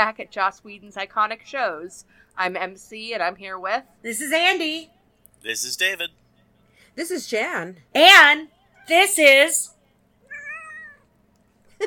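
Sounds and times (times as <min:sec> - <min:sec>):
speech: 0:00.0 - 0:06.2, 0:07.0 - 0:09.7
cat meowing: 0:10.3 - 0:11.1.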